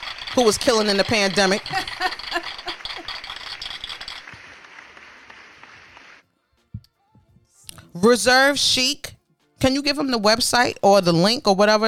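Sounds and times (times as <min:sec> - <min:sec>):
speech: 0:00.4 - 0:02.2, 0:08.0 - 0:11.8
audience applause: 0:01.6 - 0:06.2.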